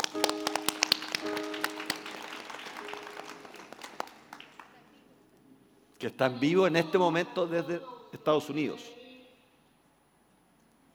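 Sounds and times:
audience applause: 0.0s - 4.8s
speech: 6.0s - 9.0s.

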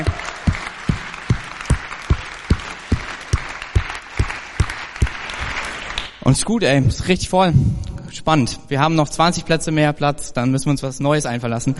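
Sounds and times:
crowd rhythmic clap-along: 0.0s - 6.2s
speech: 6.3s - 11.7s.

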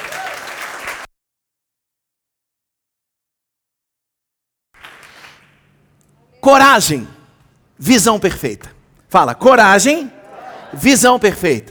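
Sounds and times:
audience applause: 0.0s - 1.1s, 4.8s - 5.5s
speech: 6.4s - 7.2s, 7.8s - 11.7s
laughter: 9.9s - 11.7s.

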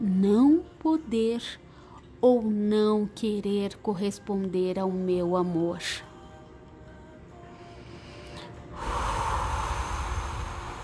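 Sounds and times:
speech: 0.2s - 1.6s, 2.2s - 6.1s
deep breath: 7.6s - 10.8s.

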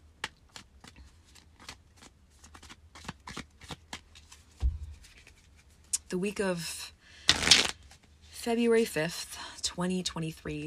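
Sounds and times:
tarot cards shuffled by hand: 0.2s - 5.9s, 7.3s - 8.1s
speech: 6.1s - 6.8s, 8.4s - 10.6s.

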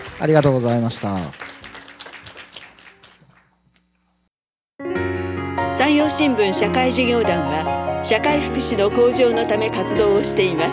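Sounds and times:
audience applause: 0.0s - 3.6s
speech: 0.2s - 1.5s, 5.9s - 10.7s.

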